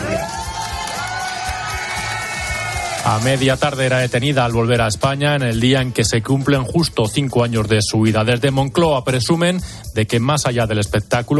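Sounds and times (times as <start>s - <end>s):
whoops and shouts: 0.0s - 3.1s
crowd cheering and clapping: 0.0s - 4.2s
speech: 3.1s - 11.3s.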